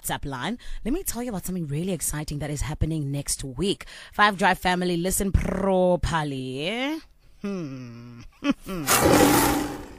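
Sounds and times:
speech: 0.1s - 9.8s
lion roaring: 8.9s - 9.9s.

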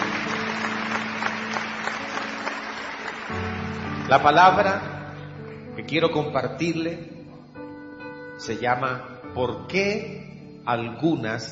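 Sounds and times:
audience applauding: 0.0s - 4.9s
speech: 4.1s - 4.9s, 5.8s - 7.1s, 8.4s - 11.5s.

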